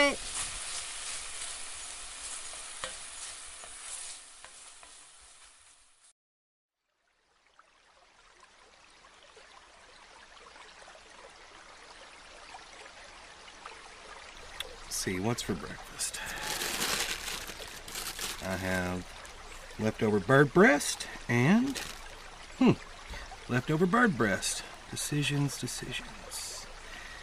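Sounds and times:
speech: 0:00.0 - 0:00.4, 0:15.0 - 0:16.4, 0:18.4 - 0:19.2, 0:19.8 - 0:21.9, 0:22.6 - 0:22.9, 0:23.5 - 0:26.2
bacon sizzling in a pan: 0:00.0 - 0:06.1, 0:16.0 - 0:19.4, 0:20.7 - 0:22.8.

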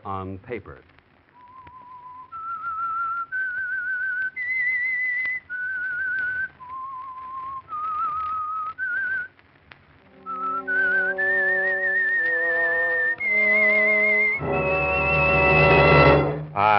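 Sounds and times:
lone whistler whistling slow eerie theme melody: 0:01.5 - 0:09.3, 0:10.1 - 0:16.3
full orchestra playing loud dramatic music: 0:10.1 - 0:16.7.

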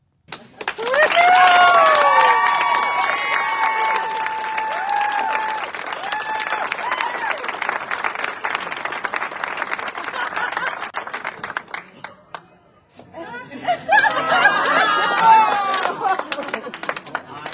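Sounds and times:
crowd applauding: 0:00.3 - 0:12.4, 0:13.9 - 0:17.5
crowd whooping and cheering: 0:00.8 - 0:08.0, 0:13.9 - 0:16.3
laughter: 0:09.8 - 0:10.9, 0:11.8 - 0:17.5.

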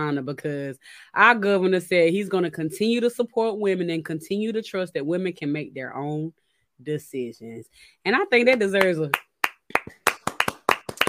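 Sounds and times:
speech: 0:00.0 - 0:10.0
hands clapping: 0:08.5 - 0:11.0.

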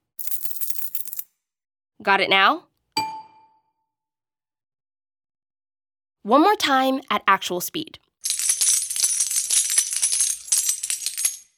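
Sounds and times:
coins pouring into a treasure chest: 0:00.2 - 0:01.2, 0:08.2 - 0:11.5
speech: 0:02.0 - 0:02.7, 0:06.3 - 0:08.1.

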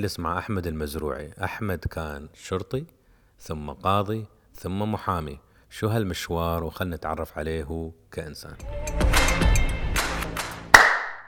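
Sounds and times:
speech: 0:00.0 - 0:09.0
hand clap: 0:10.0 - 0:11.2.

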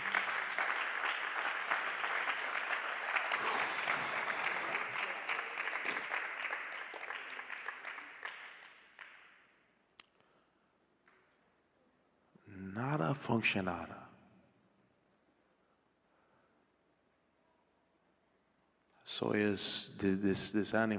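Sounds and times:
audience applauding: 0:00.0 - 0:09.4
speech: 0:13.3 - 0:14.0, 0:19.2 - 0:20.9.

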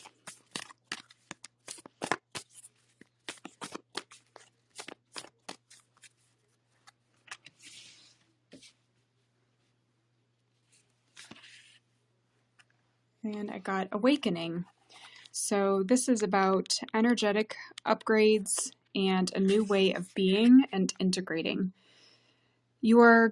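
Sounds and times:
oracle cards flicking and rustling as drawn from a deck: 0:00.0 - 0:08.8, 0:10.7 - 0:11.8
speech: 0:13.3 - 0:14.8, 0:15.5 - 0:21.8, 0:22.8 - 0:23.3.

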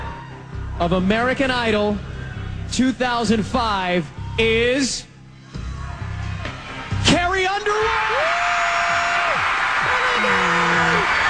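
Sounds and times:
large crowd cheering at a TV finale: 0:00.0 - 0:00.8, 0:05.6 - 0:11.2
speech: 0:00.8 - 0:02.1, 0:02.7 - 0:05.1.

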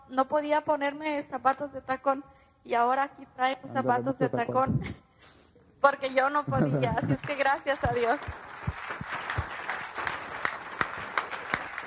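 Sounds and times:
speech: 0:00.1 - 0:05.0, 0:05.8 - 0:08.5
laughter: 0:06.5 - 0:07.4
audience applause: 0:06.9 - 0:11.8.

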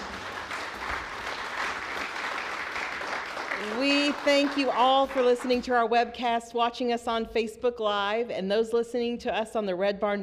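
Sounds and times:
studio audience applause for a guest: 0:00.0 - 0:05.6
speech: 0:03.8 - 0:10.2.

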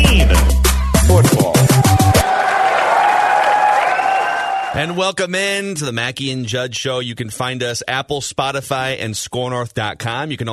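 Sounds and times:
baseball crowd cheering and applauding a Nelson Cruz home run: 0:00.9 - 0:05.1
speech: 0:04.8 - 0:10.5.

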